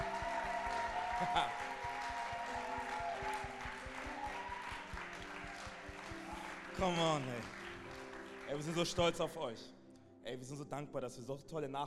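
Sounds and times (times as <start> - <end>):
audience applause: 0.0 - 9.2
speech: 1.2 - 1.7, 6.8 - 7.6, 8.5 - 11.8.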